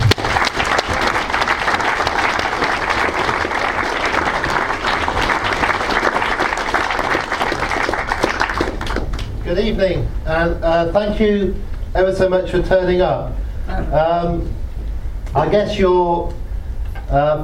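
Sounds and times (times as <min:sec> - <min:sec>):
audience applause welcoming a speaker: 0:00.0 - 0:09.4
speech: 0:09.7 - 0:14.5, 0:15.3 - 0:16.4, 0:17.1 - 0:17.4.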